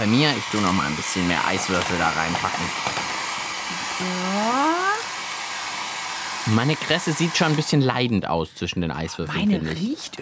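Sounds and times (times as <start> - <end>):
speech: 0.0 - 3.0, 4.0 - 5.1, 6.4 - 10.2
hair dryer blowing: 0.0 - 8.1.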